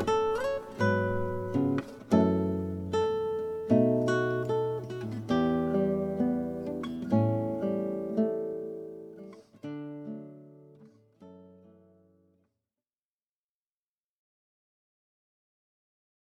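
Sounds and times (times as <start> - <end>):
acoustic guitar cocktail and dinner music: 0.0 - 12.4.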